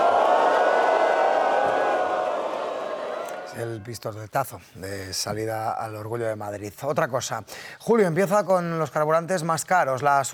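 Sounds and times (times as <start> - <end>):
crowd booing: 0.0 - 3.8
speech: 3.6 - 10.3.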